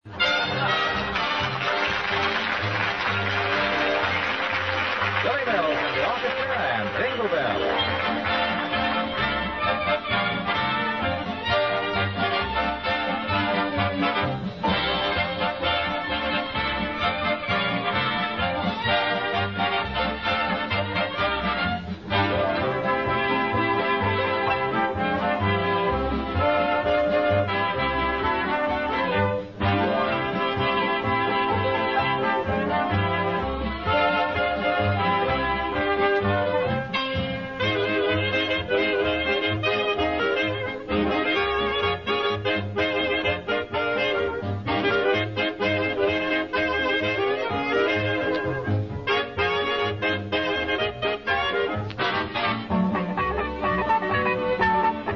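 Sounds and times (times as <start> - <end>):
Christmas song: 0.1 - 55.1.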